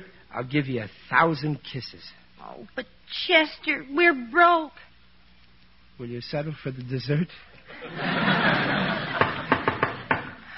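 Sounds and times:
speech: 0.4 - 4.9, 6.0 - 8.8
laughter: 7.7 - 10.4
knock on the door: 9.2 - 10.3.

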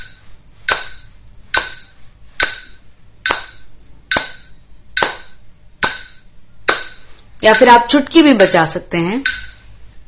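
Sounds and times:
hands clapping on each beat: 0.7 - 1.7, 3.3 - 4.4, 5.0 - 5.3
speech: 7.4 - 9.5.

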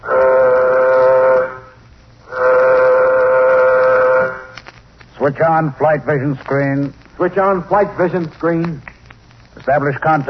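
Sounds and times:
spaceship warning signal sounding before flight: 0.0 - 4.6
speech: 5.3 - 8.9, 9.6 - 10.2.

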